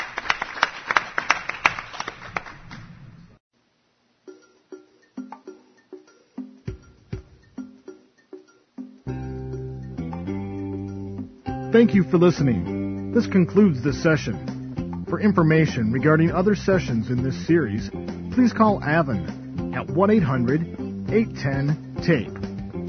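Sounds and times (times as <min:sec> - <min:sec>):
crowd applause: 0:00.0 - 0:03.2
speech: 0:11.7 - 0:14.5, 0:15.1 - 0:22.5.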